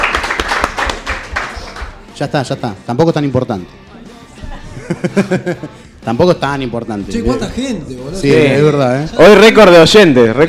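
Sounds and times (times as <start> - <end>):
audience applause: 0.0 - 2.0
speech: 2.2 - 3.8, 4.9 - 10.4
laughter: 4.4 - 5.9.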